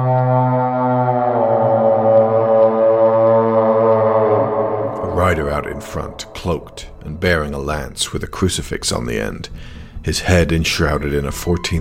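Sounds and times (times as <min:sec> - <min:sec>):
wagon horns blaring: 0:00.0 - 0:07.2
speech: 0:05.3 - 0:11.7.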